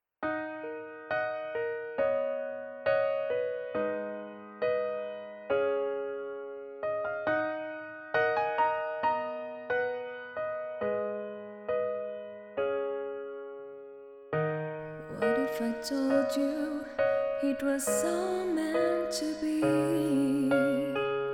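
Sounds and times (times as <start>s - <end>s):
piano music: 0.2s - 21.3s.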